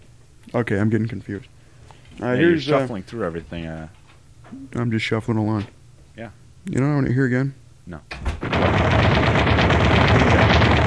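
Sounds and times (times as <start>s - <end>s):
speech: 0.5s - 1.6s, 2.2s - 9.0s
machine gun fire: 8.4s - 10.8s.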